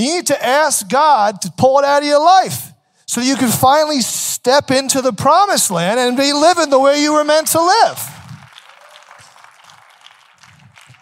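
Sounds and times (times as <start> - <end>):
speech: 0.0 - 8.2
audience clapping: 6.1 - 11.0.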